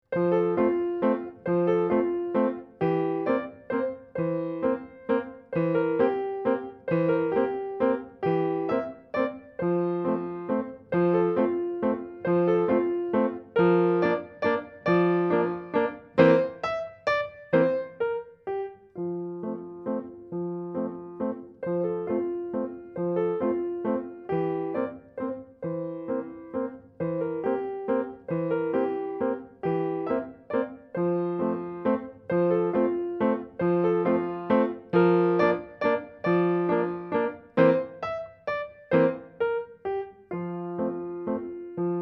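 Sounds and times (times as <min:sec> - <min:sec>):
Viennese waltz music: 0:00.6 - 0:42.0.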